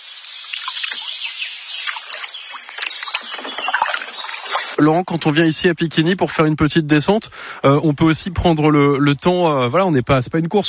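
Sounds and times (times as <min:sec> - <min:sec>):
canoe paddles splashing: 0:00.0 - 0:05.3
water dripping and churning: 0:00.0 - 0:05.4
speech: 0:00.9 - 0:01.7, 0:04.8 - 0:10.6.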